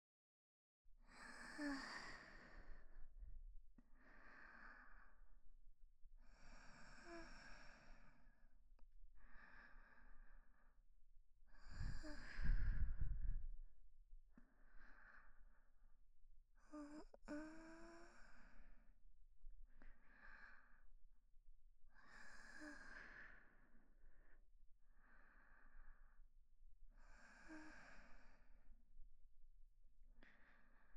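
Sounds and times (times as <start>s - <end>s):
woman breathing calmly in sleep beside her boyfriend: 1.1s - 3.2s, 3.8s - 5.4s, 6.2s - 8.5s, 9.2s - 13.6s, 14.3s - 15.8s, 16.6s - 19.0s, 19.7s - 21.0s, 21.9s - 26.3s, 27.0s - 28.7s, 30.2s - 30.9s.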